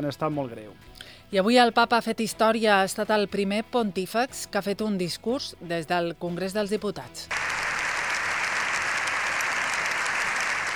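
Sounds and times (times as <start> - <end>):
speech: 0.0 - 7.4
applause for Pope Leo XIV in the Congress of Deputies: 7.3 - 10.7.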